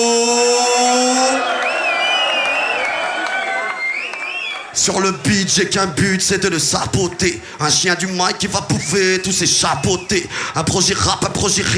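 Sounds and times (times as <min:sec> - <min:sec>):
crowd cheering and clapping: 0:00.6 - 0:05.9
shrill wavering whistles: 0:01.4 - 0:04.8, 0:08.7 - 0:10.3
speech: 0:04.8 - 0:11.7.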